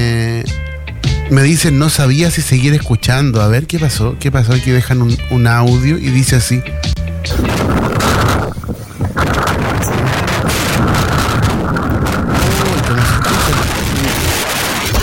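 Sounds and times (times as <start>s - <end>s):
speech: 1.3s - 7.8s
strong wind blowing through the city: 7.3s - 15.0s.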